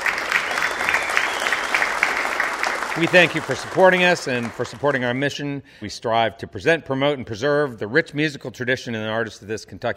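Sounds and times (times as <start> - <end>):
studio audience applause at a live music radio show in Kentucky: 0.0 - 5.2
speech: 3.0 - 9.9.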